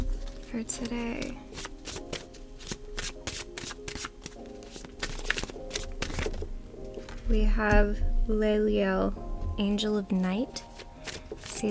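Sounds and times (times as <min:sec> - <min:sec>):
tarot cards being shuffled: 0:00.0 - 0:07.2, 0:10.5 - 0:11.6
speech: 0:00.5 - 0:01.7, 0:07.3 - 0:10.7.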